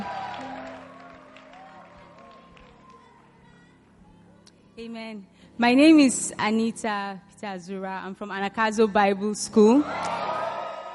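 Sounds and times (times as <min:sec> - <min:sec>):
audience clapping in welcome: 0:00.0 - 0:03.4
speech: 0:04.8 - 0:10.2.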